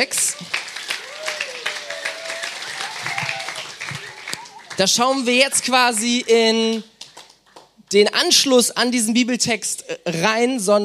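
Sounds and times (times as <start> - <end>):
speech: 0.0 - 0.6, 4.8 - 6.9, 7.9 - 10.8
audience applause: 0.0 - 7.7.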